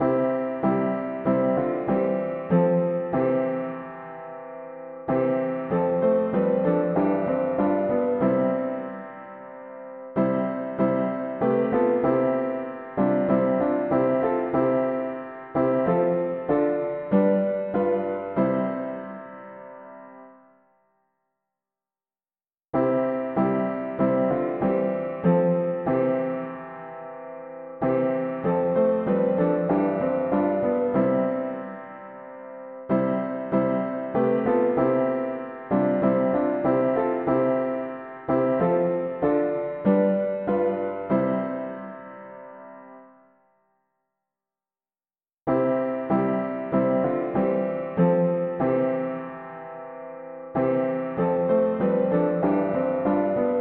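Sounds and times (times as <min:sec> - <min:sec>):
mono piano: 0:00.0 - 0:21.1, 0:22.7 - 0:43.9, 0:45.4 - 0:53.5.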